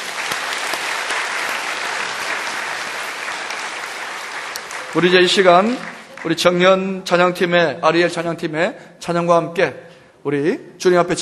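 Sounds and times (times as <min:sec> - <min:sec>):
audience applause: 0:00.0 - 0:06.6
speech: 0:04.9 - 0:11.2.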